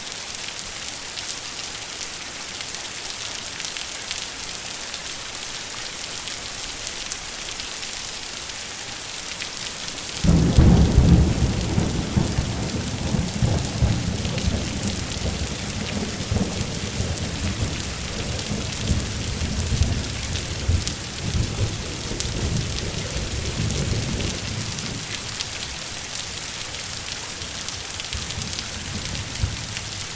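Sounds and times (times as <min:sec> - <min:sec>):
thunderstorm rain: 0:10.2 - 0:30.1.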